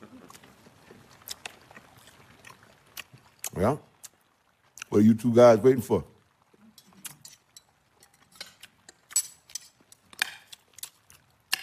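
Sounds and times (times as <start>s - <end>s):
low hiss: 0.0s - 11.6s
person chewing a tough piece of meat: 0.2s - 4.9s, 9.8s - 11.6s
speech: 3.6s - 3.9s, 4.9s - 6.1s.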